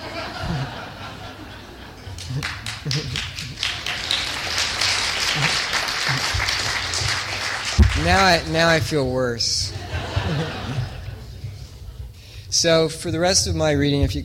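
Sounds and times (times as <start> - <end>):
laughter: 0.0 - 7.4, 9.6 - 12.2
audience clapping: 1.8 - 9.1
speech: 2.3 - 3.3, 8.0 - 10.8, 12.6 - 14.2.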